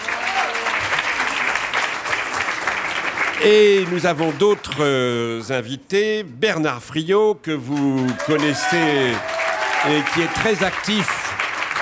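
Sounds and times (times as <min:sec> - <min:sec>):
audience applause: 0:00.0 - 0:05.2, 0:07.7 - 0:11.8
speech: 0:03.4 - 0:11.3.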